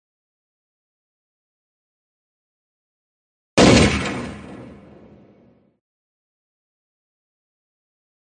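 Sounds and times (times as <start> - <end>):
gunshot echoing through the mountains: 3.6 - 5.5.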